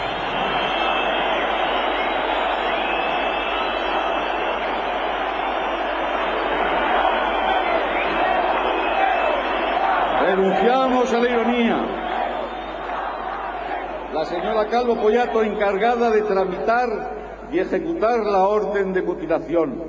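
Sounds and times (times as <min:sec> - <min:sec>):
audience booing: 0:00.0 - 0:15.6
speech: 0:11.0 - 0:11.9, 0:14.3 - 0:19.8.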